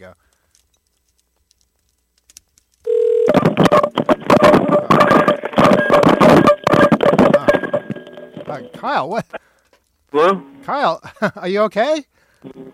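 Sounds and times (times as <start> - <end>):
speech: 0.0 - 0.4, 3.7 - 4.9, 8.8 - 9.5, 10.1 - 12.7
telephone dial tone: 2.9 - 8.1.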